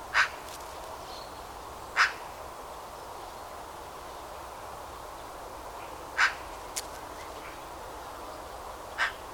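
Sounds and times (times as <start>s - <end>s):
Eurasian magpie Pica pica giving harsh grating calls: 0.1s - 0.5s, 1.9s - 2.3s, 6.2s - 6.5s, 9.0s - 9.2s.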